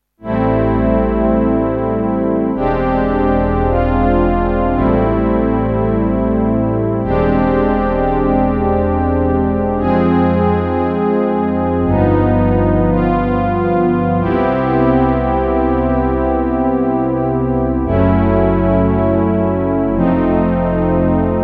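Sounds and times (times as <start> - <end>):
TX7 synthesizer strings: 0.2 - 21.4.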